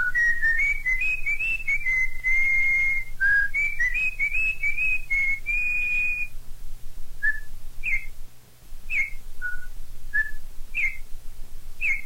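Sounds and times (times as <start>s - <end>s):
corrupião bird singing: 0.0s - 6.3s, 7.2s - 8.2s, 8.9s - 11.0s, 11.8s - 12.0s.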